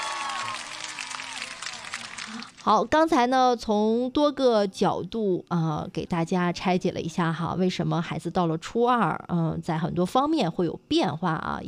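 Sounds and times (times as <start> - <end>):
audience applause at a parenting talk event: 0.0 - 2.6
speech: 2.3 - 11.6.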